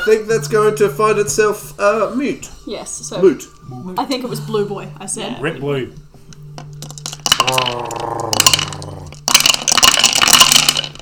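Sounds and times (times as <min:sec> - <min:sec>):
speech: 0:00.0 - 0:06.0
dice dropped down a dice tower: 0:06.8 - 0:10.9.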